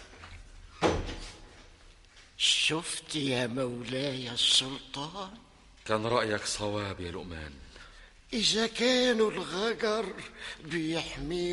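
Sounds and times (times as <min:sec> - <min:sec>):
door shutting with thud: 0:00.8 - 0:01.4
speech: 0:02.4 - 0:07.7, 0:08.3 - 0:11.5.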